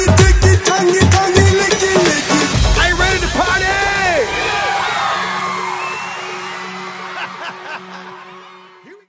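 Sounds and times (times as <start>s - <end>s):
breakbeat drums at 128 bpm: 0.0s - 5.6s
laughter: 6.8s - 8.6s.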